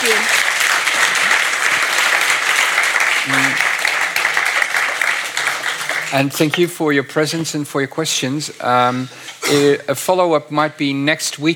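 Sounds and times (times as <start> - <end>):
audience applause: 0.0 - 7.0
speech: 6.1 - 11.5.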